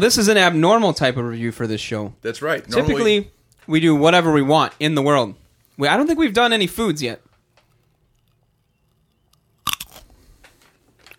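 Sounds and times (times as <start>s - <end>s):
speech: 0.0s - 7.2s
teeth biting through a raw carrot: 8.2s - 10.4s.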